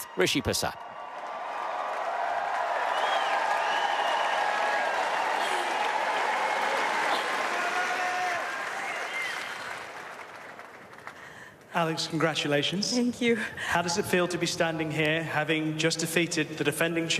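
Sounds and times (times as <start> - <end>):
crowd whistles and cheers: 0.0 - 10.6
large crowd applauding on centre court: 0.0 - 11.6
speech: 0.2 - 0.9, 11.8 - 17.1.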